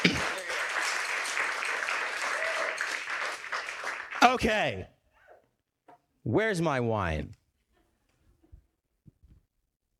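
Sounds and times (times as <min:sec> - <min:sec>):
audience round of applause: 0:00.0 - 0:04.6
speech: 0:04.2 - 0:04.9, 0:06.2 - 0:07.4.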